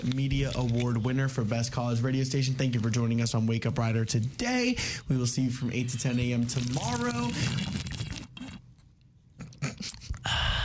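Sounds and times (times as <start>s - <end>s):
speech: 0.0s - 7.9s
person drinking water: 6.5s - 10.6s.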